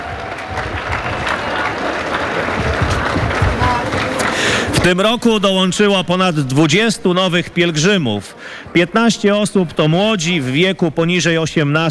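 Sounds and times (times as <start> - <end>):
audience applause: 0.0 - 5.4
speech: 4.8 - 11.8.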